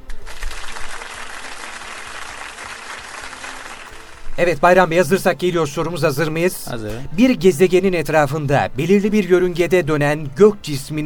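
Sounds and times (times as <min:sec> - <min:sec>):
applause: 0:00.0 - 0:04.3
speech: 0:04.4 - 0:11.0.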